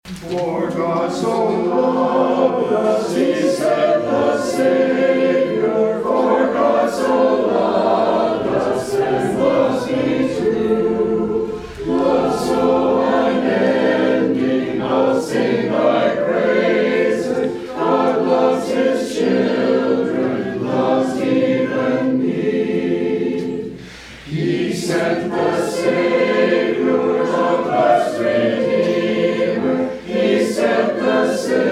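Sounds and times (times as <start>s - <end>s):
hymn sung in English: 0.1s - 31.7s.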